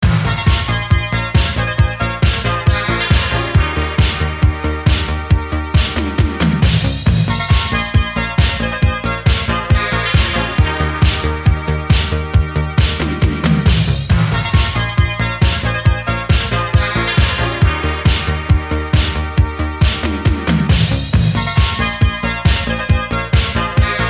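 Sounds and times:
80s beat: 0.0 - 24.0.

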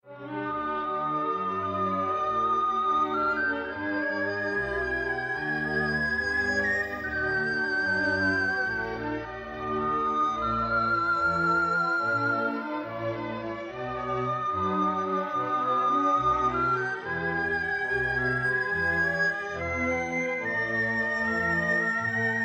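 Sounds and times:
Japanese pan flute: 0.6 - 22.4.

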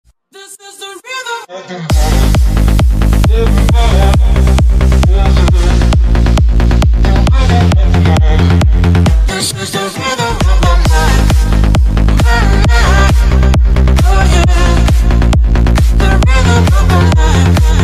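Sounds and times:
bouncy rhythm: 1.9 - 17.8.

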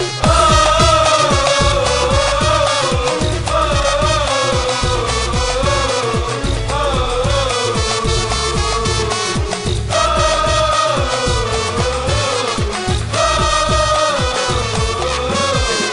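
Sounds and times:
audience: 0.2 - 15.9.

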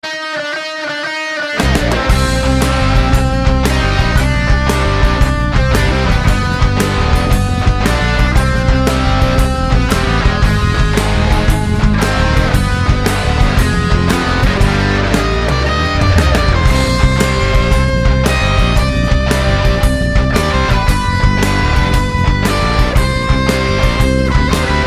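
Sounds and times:
Kurdish rock music: 0.0 - 24.8.

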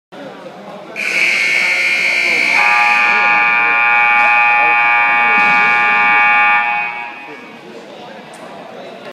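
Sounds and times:
buzzers: 1.0 - 7.5.

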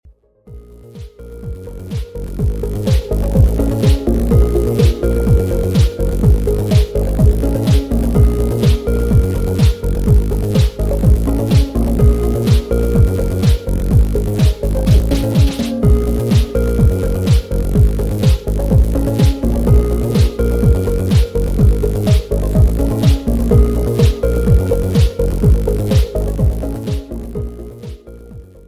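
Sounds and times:
funk remix: 0.9 - 28.2.

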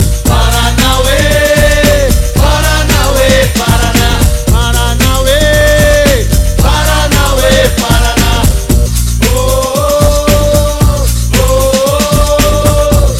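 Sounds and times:
short capoeira music: 0.0 - 13.1.

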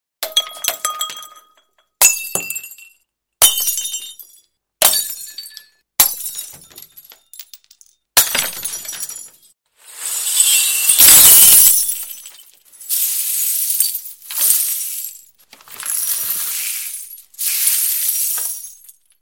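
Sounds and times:
glass crashing: 0.2 - 19.1.

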